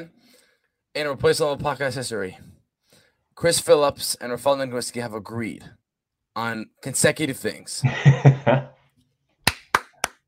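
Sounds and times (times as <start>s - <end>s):
speech: 0.0s - 0.4s, 1.0s - 2.6s, 3.4s - 5.8s, 6.4s - 8.7s
laughter: 7.8s - 8.7s
applause: 9.5s - 10.2s.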